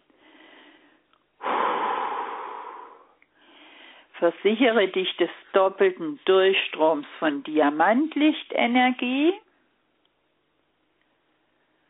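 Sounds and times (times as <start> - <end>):
deep breath during a guided breathing exercise: 0.1 - 4.2
speech: 4.2 - 9.4.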